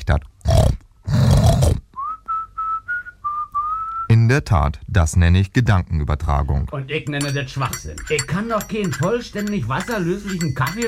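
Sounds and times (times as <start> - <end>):
speech: 0.1 - 0.3, 4.3 - 10.8
pig in a pigsty grunting snort: 0.4 - 1.8.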